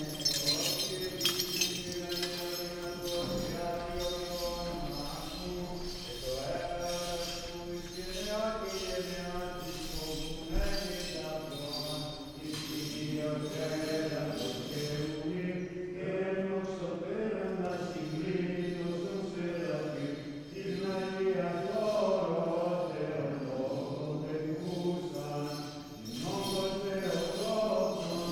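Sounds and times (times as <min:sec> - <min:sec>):
carillon in a Greek Orthodox church: 0:00.0 - 0:05.4
chants at a Greek Orthodox mass: 0:00.0 - 0:28.3
prayers at a Greek Orthodox mass: 0:00.0 - 0:28.3.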